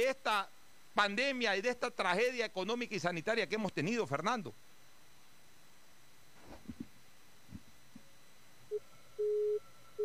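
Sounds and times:
speech: 0.0s - 4.6s
telephone busy signal beeps after a dropped call: 8.7s - 10.0s.

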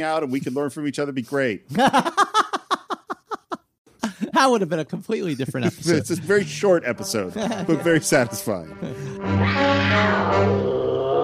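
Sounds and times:
speech: 0.0s - 2.3s, 4.4s - 10.8s
laughter: 1.7s - 9.2s
giant cat screeching: 9.4s - 11.2s.

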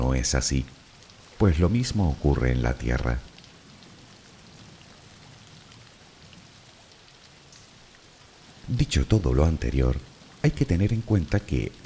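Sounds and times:
steady rain: 0.0s - 11.8s
speech: 0.2s - 0.8s, 1.4s - 3.3s, 8.7s - 11.8s.

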